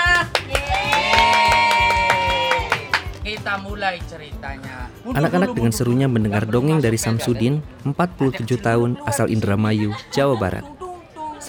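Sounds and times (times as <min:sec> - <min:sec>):
audience applause: 0:00.0 - 0:03.6
speech: 0:03.5 - 0:10.8.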